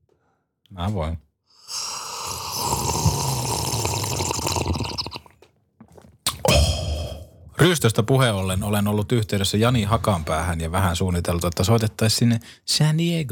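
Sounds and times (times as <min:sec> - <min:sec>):
speech: 0:00.7 - 0:01.2, 0:07.6 - 0:13.3
loud slurping of a drink: 0:01.7 - 0:07.3.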